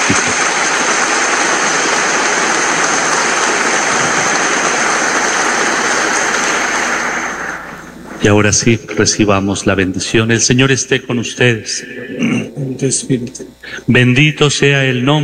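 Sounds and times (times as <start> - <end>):
audience applauding in welcome: 0.0 - 8.4
speech: 8.2 - 15.2.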